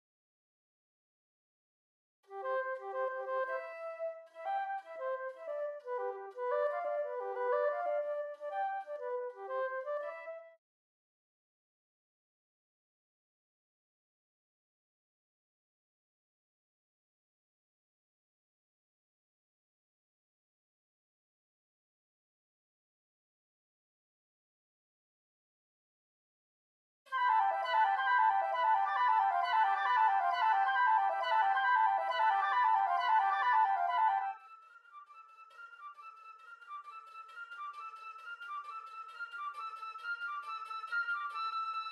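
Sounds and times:
flute: 2.2s - 10.6s, 27.1s - 41.9s.

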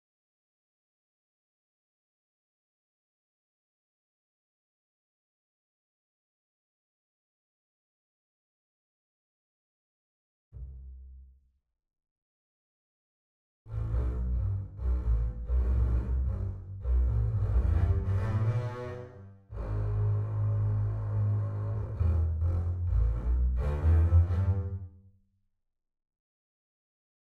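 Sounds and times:
double basses playing: 13.7s - 24.8s.

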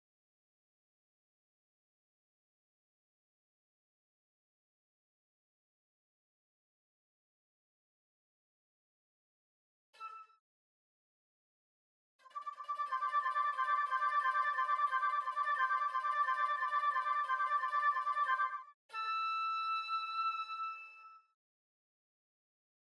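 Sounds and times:
flute: 10.0s - 10.4s, 12.2s - 21.4s.

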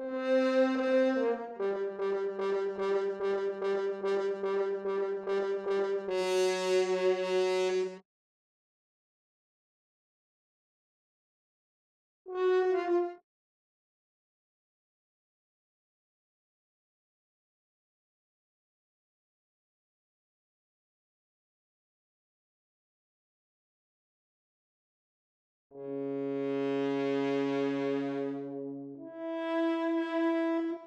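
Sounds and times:
horn: 0.0s - 8.0s, 12.3s - 13.2s, 25.7s - 30.8s.

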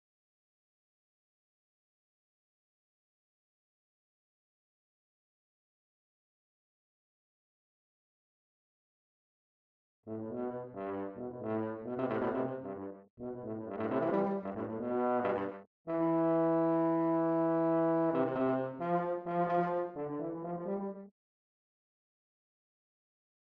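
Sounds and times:
tuba: 10.1s - 21.1s.

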